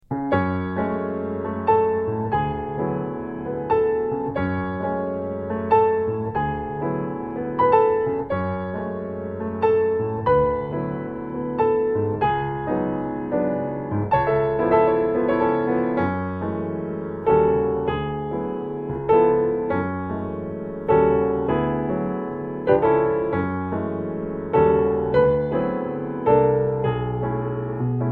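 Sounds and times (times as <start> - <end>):
solo piano: 0.0 - 28.1.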